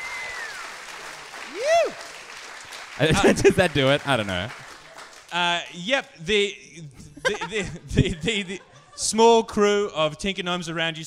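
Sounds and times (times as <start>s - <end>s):
audience applause: 0.0s - 5.6s
speech: 3.0s - 4.6s, 5.3s - 11.0s
laughter: 3.0s - 5.0s, 6.8s - 9.2s.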